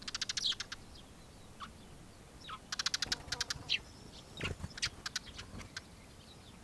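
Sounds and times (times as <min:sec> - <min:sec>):
Eurasian tree sparrow Passer montanus chirps and rattling ticking notes: 0:00.0 - 0:06.0.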